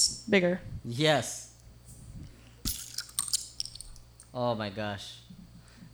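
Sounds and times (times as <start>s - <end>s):
low hum: 0.0s - 5.9s
speech: 0.3s - 1.4s, 4.4s - 5.2s
glass mineral water bottle pried open with opener: 2.6s - 4.0s
light clinks: 2.6s - 4.3s.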